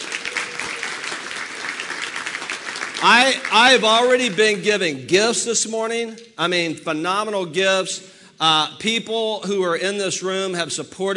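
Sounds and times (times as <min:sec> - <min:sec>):
audience applause: 0:00.0 - 0:04.2
speech: 0:03.0 - 0:11.1.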